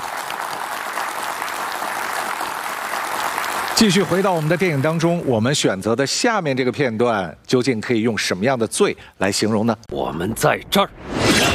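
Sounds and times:
audience applause: 0.0s - 5.3s
speech: 3.8s - 11.2s.

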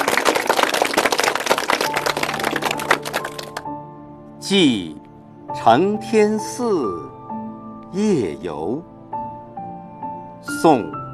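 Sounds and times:
audience applause: 0.0s - 3.6s
speech: 4.5s - 5.0s, 5.6s - 7.2s, 7.9s - 8.9s, 10.6s - 11.0s.

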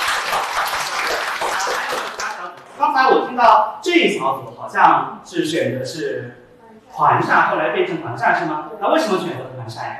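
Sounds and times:
applause: 0.0s - 2.7s
speech: 3.0s - 9.9s.

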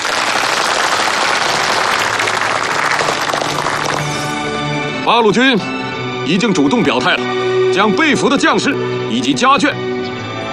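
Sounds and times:
applause: 0.0s - 4.5s
speech: 5.1s - 9.9s.

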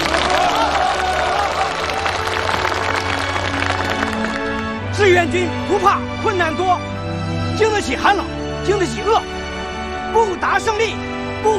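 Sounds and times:
audience applause: 0.0s - 4.8s
speech: 5.2s - 7.0s, 7.6s - 9.4s, 10.2s - 11.5s.

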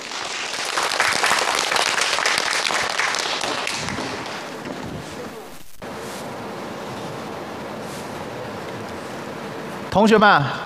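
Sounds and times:
audience applause: 0.0s - 5.4s
speech: 10.0s - 10.6s.

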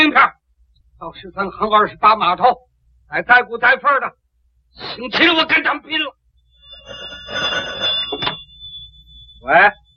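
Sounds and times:
speech: 1.0s - 6.2s, 9.4s - 9.8s
telephone bell ringing: 6.5s - 9.5s.

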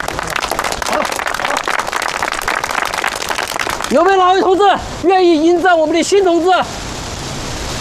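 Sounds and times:
audience applause: 0.0s - 4.2s
speech: 3.9s - 6.8s.

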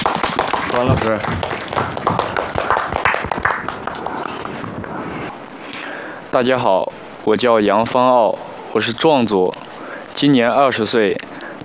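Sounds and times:
audience clapping welcoming a young dance performer onto a stage: 0.0s - 5.3s
speech: 0.8s - 2.2s, 6.3s - 9.6s, 10.2s - 11.6s.

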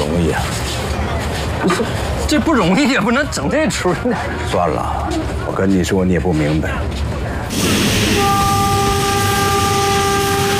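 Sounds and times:
train rolling into a station: 0.0s - 10.5s
speech: 1.6s - 8.6s
train horn: 7.6s - 10.5s.

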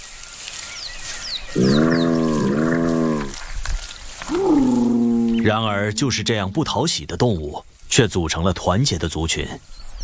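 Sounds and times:
speech: 1.5s - 2.1s, 5.5s - 9.9s
spotted hyena calls: 1.6s - 3.4s, 4.2s - 6.4s.

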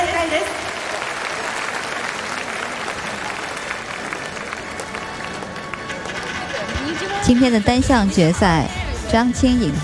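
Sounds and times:
audience applause in an arena: 0.2s - 6.7s
speech: 7.3s - 9.8s.

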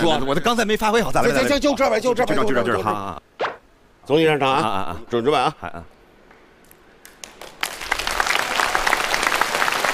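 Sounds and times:
speech: 0.1s - 3.3s, 4.1s - 5.9s
audience applause: 7.1s - 9.9s.

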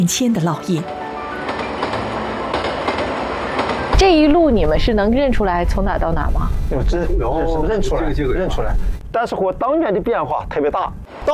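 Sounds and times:
speech: 0.0s - 1.0s, 4.0s - 11.3s
train pulling out of Tongliao station rumbling: 0.8s - 9.0s.

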